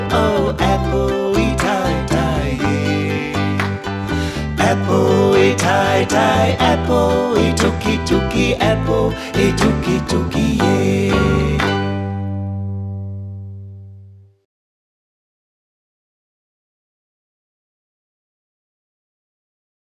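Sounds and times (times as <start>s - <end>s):
ukulele Maori song: 0.0s - 13.9s.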